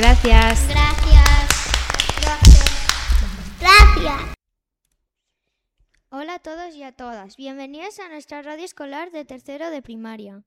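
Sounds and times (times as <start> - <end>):
speech: 0.0 - 1.3, 6.2 - 10.4
small group clapping: 0.0 - 4.2.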